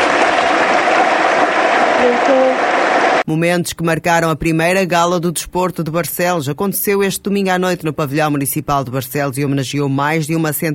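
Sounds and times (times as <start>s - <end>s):
audience applause: 0.0s - 3.2s
speech: 2.1s - 2.6s, 3.3s - 10.7s.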